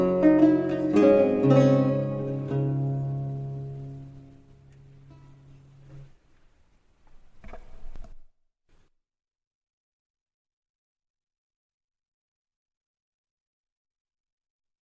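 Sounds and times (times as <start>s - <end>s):
prelude minuet: 0.0s - 6.0s.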